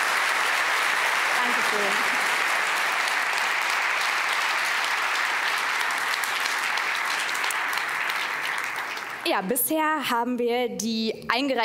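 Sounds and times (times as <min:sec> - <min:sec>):
audience applause: 0:00.0 - 0:09.3
speech: 0:01.7 - 0:02.2, 0:09.3 - 0:11.6.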